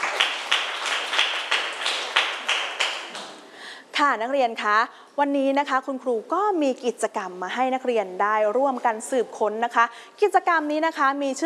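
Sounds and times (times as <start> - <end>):
students clapping: 0.0 - 3.5
speech: 4.0 - 11.4.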